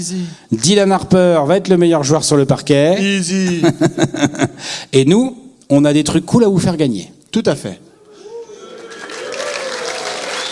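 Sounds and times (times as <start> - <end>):
speech: 0.0 - 7.9
audience applauding in a bar: 8.4 - 10.5.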